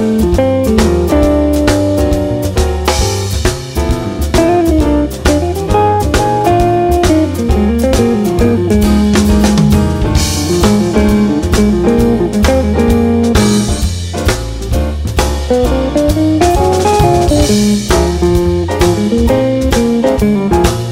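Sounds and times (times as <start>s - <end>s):
jazz guitar blues with guitar soloist: 0.0s - 20.9s.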